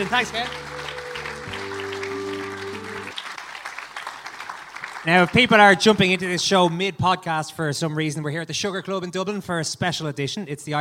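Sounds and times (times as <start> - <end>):
speech: 0.0 - 0.6, 5.0 - 10.8
audience applause: 0.0 - 5.8.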